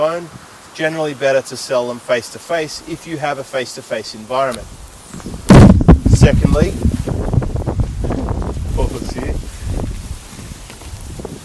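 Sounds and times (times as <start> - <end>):
speech: 0.0 - 5.3, 6.2 - 6.9
outdoor wind buffeting the microphone: 4.5 - 11.4.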